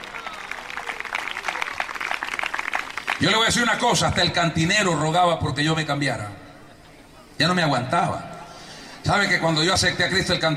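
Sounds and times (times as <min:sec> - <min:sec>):
audience applause: 0:00.0 - 0:03.6
speech: 0:03.2 - 0:06.4, 0:07.4 - 0:08.3, 0:09.0 - 0:10.5.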